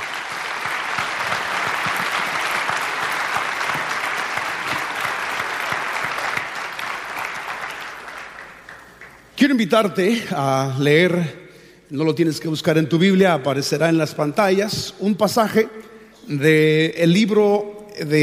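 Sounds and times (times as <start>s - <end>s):
large audience applause: 0.0s - 9.3s
speech: 9.4s - 18.2s.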